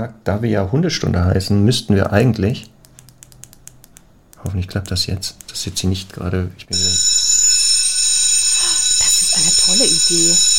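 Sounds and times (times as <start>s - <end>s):
speech: 0.0s - 2.7s, 4.4s - 7.1s, 9.7s - 10.5s
school bell ringing: 6.8s - 10.5s.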